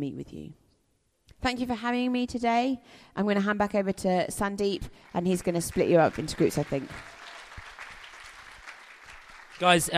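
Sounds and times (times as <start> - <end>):
speech: 0.0 - 0.6, 1.4 - 7.2, 9.6 - 9.9
audience applause: 5.2 - 9.9.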